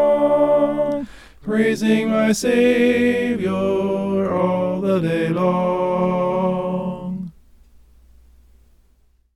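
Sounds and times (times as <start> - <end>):
tenor singing: 0.0 - 7.4.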